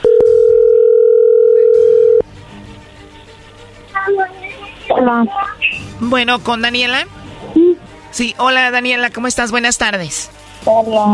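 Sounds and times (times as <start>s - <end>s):
phone line ringback tone on an outgoing call: 0.0s - 2.2s
speech: 5.0s - 7.2s, 8.1s - 11.1s.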